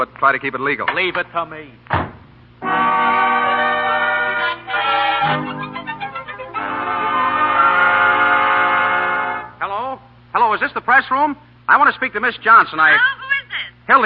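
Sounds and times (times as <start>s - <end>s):
speech: 0.0s - 2.0s, 10.6s - 13.2s
train horn blaring: 2.6s - 9.6s.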